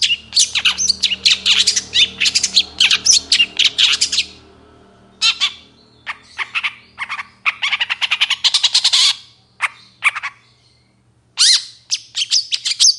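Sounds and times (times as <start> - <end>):
long-tailed shrike singing in the morning: 0.0 - 10.3.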